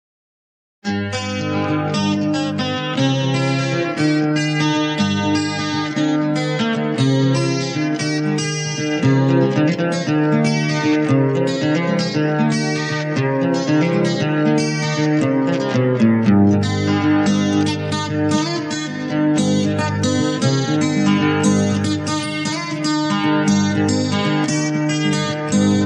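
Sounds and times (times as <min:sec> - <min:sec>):
instrumental music: 0:00.9 - 0:25.8.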